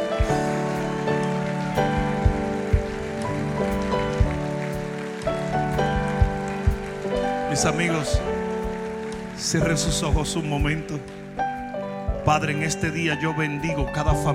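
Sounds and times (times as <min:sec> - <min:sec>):
audience applause: 0:00.0 - 0:11.4
speech: 0:07.6 - 0:08.3, 0:09.4 - 0:11.2, 0:12.2 - 0:14.3.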